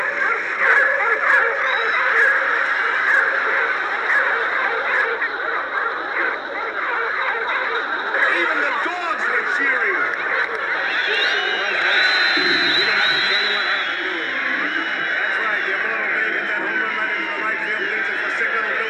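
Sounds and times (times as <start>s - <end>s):
baseball crowd roar: 0.0s - 18.8s
laughter: 0.0s - 18.8s.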